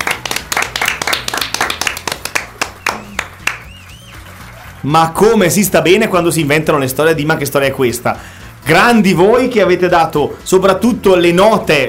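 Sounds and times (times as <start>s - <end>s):
audience clapping: 0.0s - 5.4s
speech: 4.8s - 11.8s.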